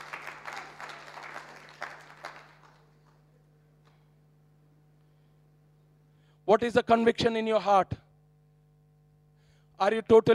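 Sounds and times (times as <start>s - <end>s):
audience clapping: 0.0s - 4.0s
low constant hum: 0.0s - 10.3s
speech: 6.5s - 8.0s, 9.8s - 10.3s.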